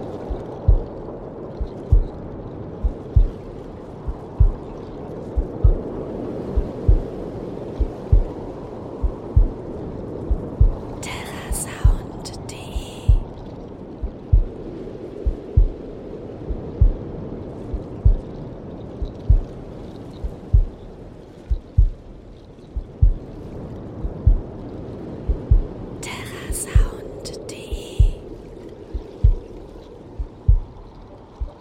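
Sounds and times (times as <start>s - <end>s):
waves: 0.0s - 31.6s
heartbeat: 0.2s - 2.2s, 2.8s - 7.2s, 7.8s - 8.4s, 9.0s - 13.4s, 14.0s - 19.6s, 20.2s - 22.1s, 22.8s - 23.4s, 24.0s - 24.5s, 25.3s - 25.8s, 26.4s - 28.2s, 28.9s - 29.6s, 30.2s - 31.6s.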